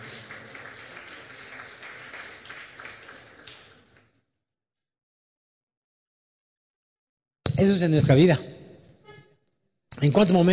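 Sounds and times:
audience applause: 0.0 - 4.1
speech: 7.6 - 8.6, 10.0 - 10.5.

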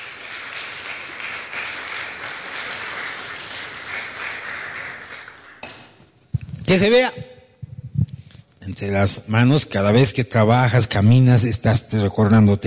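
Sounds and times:
audience applause: 0.0 - 5.6
speech: 6.7 - 7.2, 8.8 - 12.6.

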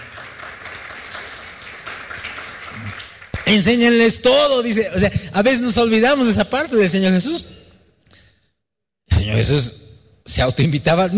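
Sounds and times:
audience applauding: 0.0 - 4.0
speech: 3.5 - 7.5, 9.4 - 11.1.

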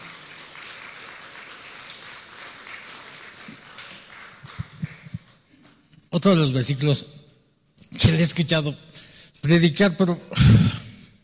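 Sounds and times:
audience applause: 0.0 - 5.8
speech: 6.2 - 7.2, 8.1 - 10.7.

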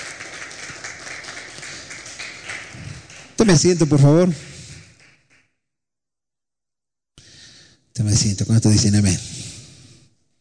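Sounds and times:
audience applause: 0.0 - 3.6
speech: 3.4 - 4.5, 8.0 - 9.4.

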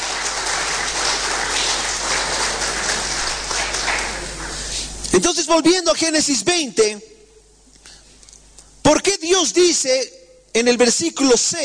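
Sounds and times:
audience applause: 0.0 - 4.8
speech: 5.2 - 7.2, 8.9 - 11.6.

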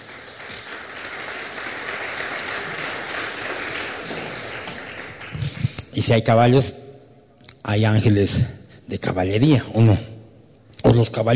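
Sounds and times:
audience applauding: 0.0 - 5.8
speech: 6.0 - 6.8, 7.7 - 10.1, 10.9 - 11.3.

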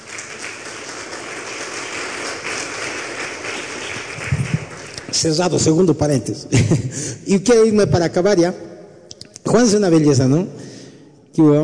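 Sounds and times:
audience applauding: 0.0 - 5.6
speech: 5.2 - 8.7, 9.5 - 10.6, 11.4 - 11.6.

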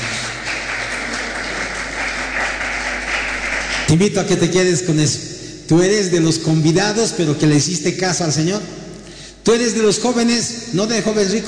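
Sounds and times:
applause: 0.0 - 4.5
speech: 3.9 - 8.8, 9.5 - 11.4.

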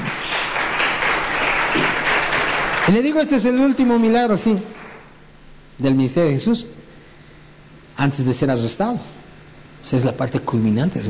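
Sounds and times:
church congregation applause during a sermon: 0.0 - 5.1
speech: 2.9 - 4.8, 5.8 - 6.8, 8.0 - 9.2, 9.8 - 11.0.

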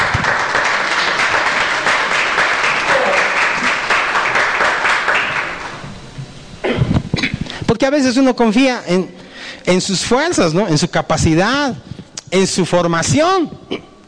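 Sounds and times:
audience applauding: 0.0 - 5.8
speech: 7.8 - 13.9.

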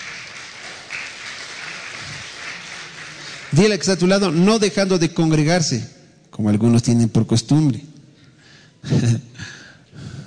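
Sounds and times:
crowd applauding: 0.0 - 4.5
speech: 3.5 - 7.9, 8.8 - 9.6.

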